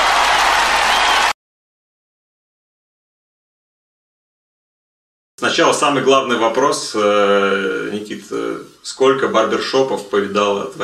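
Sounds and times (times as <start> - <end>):
studio applause: 0.0 - 1.4
speech: 5.4 - 10.8.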